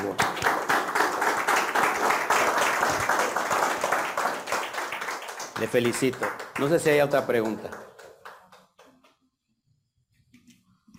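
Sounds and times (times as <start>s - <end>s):
audience clapping: 0.0s - 9.2s
speech: 5.6s - 7.9s.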